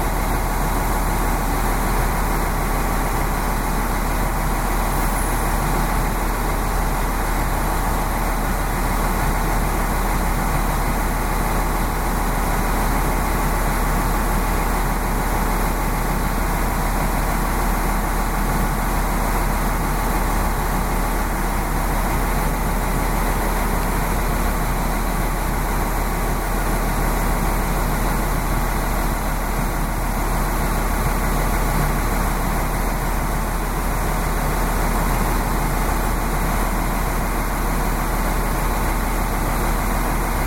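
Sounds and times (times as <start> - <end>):
Lint 41 diesel multiple unit train idling at Holbæk Station: 0.0 - 40.4.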